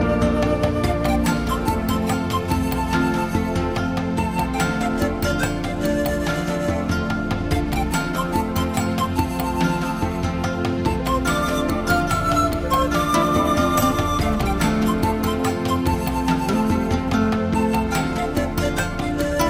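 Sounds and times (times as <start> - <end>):
flute: 0.0 - 19.4.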